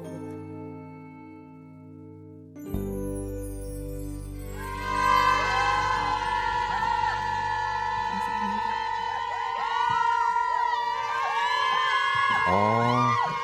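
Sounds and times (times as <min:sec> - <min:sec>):
brief low musical ending: 0:02.6 - 0:09.5
audience cheering with high-pitched shrieks and whoops: 0:04.6 - 0:13.3.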